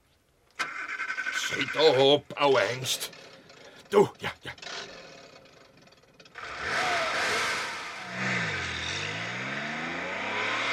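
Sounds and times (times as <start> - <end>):
road noise: 0.6 - 10.7
speech: 1.5 - 3.3, 3.9 - 4.6
car engine accelerating: 4.5 - 10.7.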